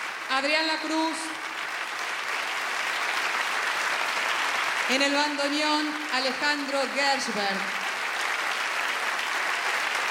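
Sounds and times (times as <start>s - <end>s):
loud audience applause: 0.0s - 10.0s
speech: 0.4s - 1.5s, 4.9s - 7.8s.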